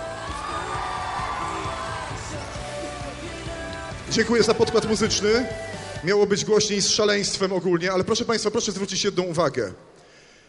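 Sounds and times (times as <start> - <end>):
crowd cheering with shouts and whoops: 0.0 - 4.1
large crowd applauding: 0.0 - 5.4
speech: 4.1 - 9.9.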